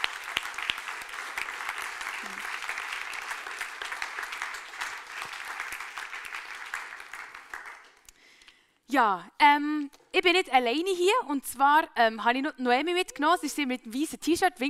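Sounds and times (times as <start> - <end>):
audience applause: 0.0 - 8.0
speech: 9.0 - 14.6.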